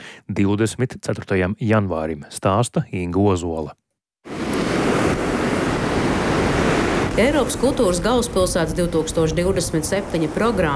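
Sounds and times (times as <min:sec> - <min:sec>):
speech: 0:00.3 - 0:03.8, 0:07.2 - 0:10.7
strong gusts of wind in Liepāja: 0:04.3 - 0:10.7.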